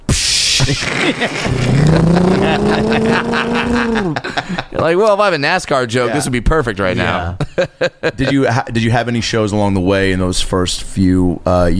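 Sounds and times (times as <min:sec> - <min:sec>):
laughter: 0:00.6 - 0:05.1, 0:07.0 - 0:08.5
speech: 0:00.7 - 0:11.7
person vocally imitating a passing bus: 0:01.2 - 0:04.2.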